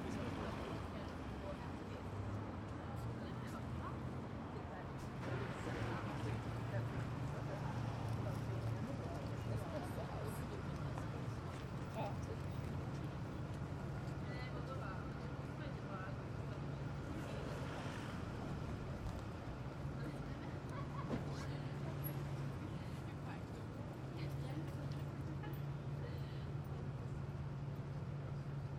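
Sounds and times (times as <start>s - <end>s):
light midday traffic: 0.0s - 28.7s.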